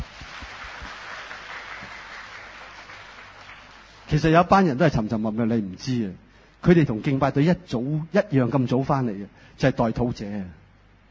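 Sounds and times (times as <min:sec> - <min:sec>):
audience applause: 0:00.0 - 0:04.1
speech: 0:04.1 - 0:10.6.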